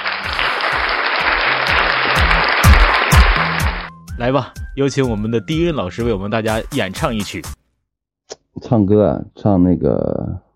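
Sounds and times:
applause: 0:00.0 - 0:03.9
speech: 0:04.2 - 0:07.6, 0:08.6 - 0:10.4.

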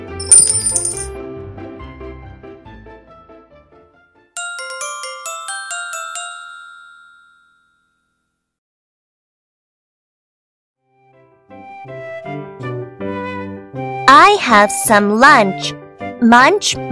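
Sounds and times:
two coins clinking into piggy bank: 0:00.0 - 0:01.1
speech: 0:14.1 - 0:16.9.

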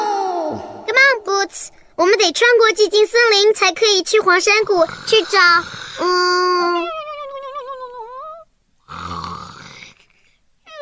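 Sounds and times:
speech: 0:00.5 - 0:00.7, 0:01.4 - 0:06.9
person snoring: 0:04.6 - 0:06.8, 0:08.9 - 0:10.4.

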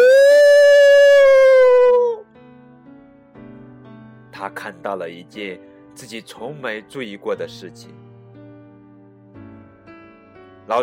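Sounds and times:
human voice imitating a startled old elephant's frightened cry: 0:00.0 - 0:02.2
speech: 0:04.8 - 0:08.1.

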